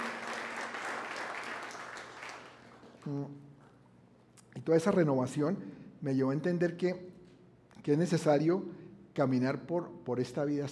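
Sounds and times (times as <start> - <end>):
audience applause: 0.0 - 2.9
speech: 3.0 - 3.5, 4.6 - 7.1, 7.8 - 10.6.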